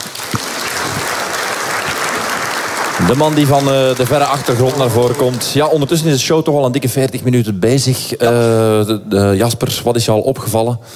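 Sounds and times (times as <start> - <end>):
audience applause for a guest on a Dutch show: 0.0 - 6.0
speech: 3.0 - 10.9.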